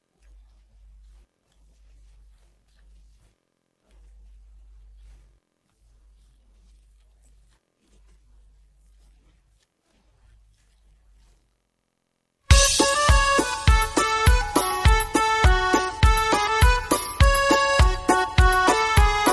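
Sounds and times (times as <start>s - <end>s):
backing track: 12.5s - 19.3s.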